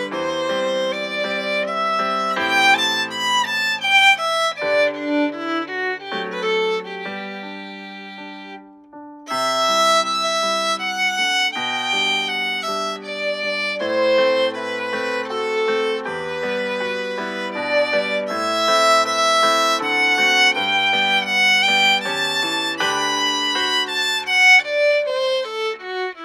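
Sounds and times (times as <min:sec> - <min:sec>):
violin playing an etude: 0:00.0 - 0:26.2.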